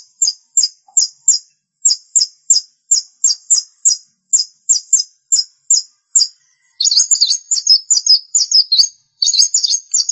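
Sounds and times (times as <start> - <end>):
long-tailed shrike song: 0.0 - 10.1.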